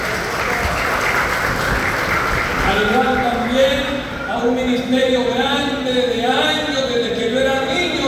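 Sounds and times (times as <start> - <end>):
audience applause: 0.0 - 3.6
speech: 2.8 - 8.0.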